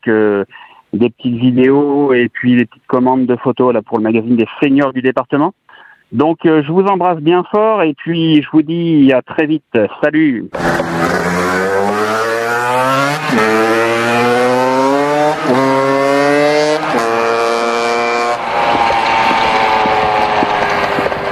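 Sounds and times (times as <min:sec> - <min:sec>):
speech: 0:00.0 - 0:11.5, 0:12.6 - 0:14.3
moped engine pulling away: 0:10.6 - 0:21.2.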